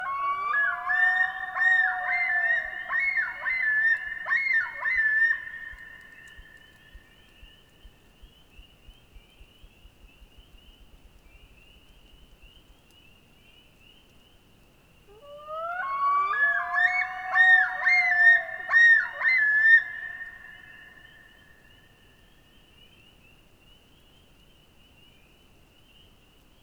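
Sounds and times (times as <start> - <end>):
common loon wail in the Boundary Waters: 0.0 - 5.4, 15.1 - 20.6.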